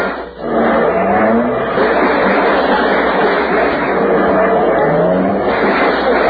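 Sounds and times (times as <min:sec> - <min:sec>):
car engine droning: 0:00.2 - 0:06.2.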